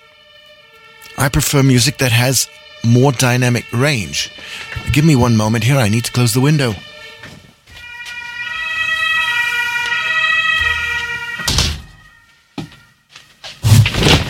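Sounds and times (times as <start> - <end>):
fire truck sirens rolling out of the fire station: 0.0 - 13.7
speech: 1.2 - 6.9
heavy thumps: 13.6 - 14.2.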